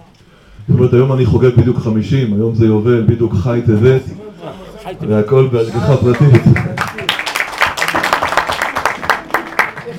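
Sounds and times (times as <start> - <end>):
speech: 0.7 - 6.8
crowd applauding: 5.9 - 9.9.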